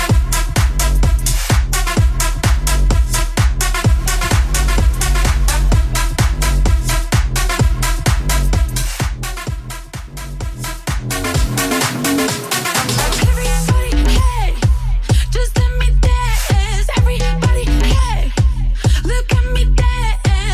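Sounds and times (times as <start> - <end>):
Top40 pop dance beat at 128 bpm: 0.0 - 20.5.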